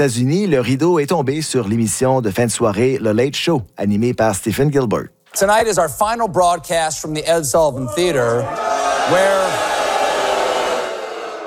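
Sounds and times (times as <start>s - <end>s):
speech: 0.0s - 9.8s
large audience booing: 7.8s - 11.4s.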